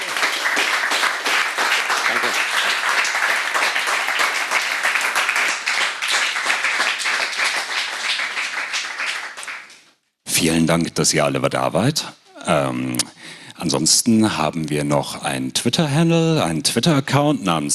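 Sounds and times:
audience applause: 0.0 - 9.8
speech: 10.5 - 17.7.

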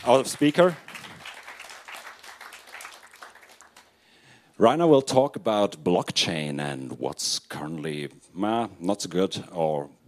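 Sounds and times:
speech: 0.0 - 0.9, 4.6 - 10.0
audience applause: 0.0 - 3.9.

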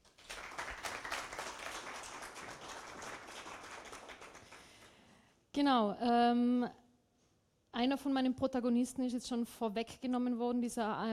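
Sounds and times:
audience applause: 0.0 - 4.9
speech: 5.6 - 6.8, 7.8 - 11.1.

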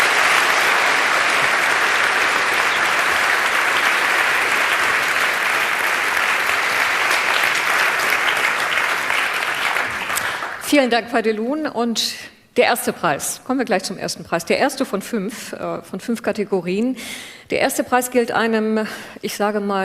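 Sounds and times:
audience applause: 0.0 - 10.7
speech: 10.7 - 19.8.

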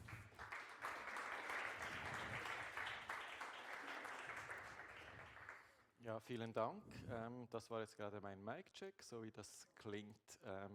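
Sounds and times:
audience applause: 0.0 - 5.7
speech: 6.0 - 10.7.

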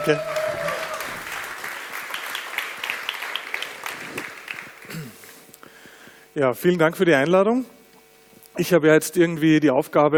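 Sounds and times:
speech: 0.0 - 0.3, 6.4 - 7.8, 8.6 - 10.1
audience applause: 0.0 - 5.4.

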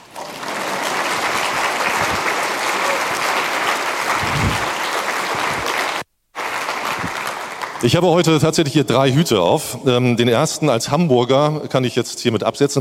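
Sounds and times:
audience applause: 0.0 - 7.9
speech: 7.8 - 12.7.

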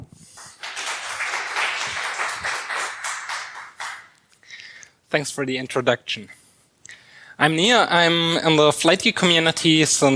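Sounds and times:
audience applause: 0.4 - 4.2
speech: 5.1 - 6.4, 7.4 - 10.1.

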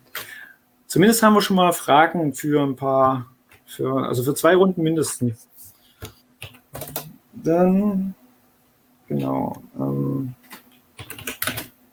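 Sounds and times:
speech: 0.9 - 5.5, 7.4 - 8.2, 9.1 - 10.4
computer keyboard typing a chat message: 6.0 - 7.1, 10.4 - 11.9.

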